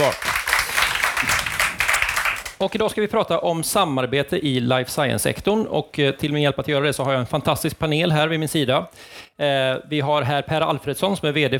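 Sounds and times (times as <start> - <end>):
speech: 0.0 - 0.3, 2.6 - 11.5
live audience crowd applauding: 0.0 - 2.6.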